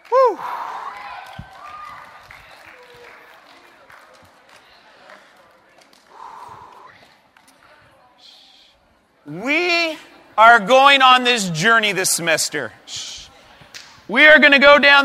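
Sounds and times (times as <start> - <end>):
audience applause: 0.0 - 6.9
speech: 10.4 - 13.1, 14.1 - 15.0.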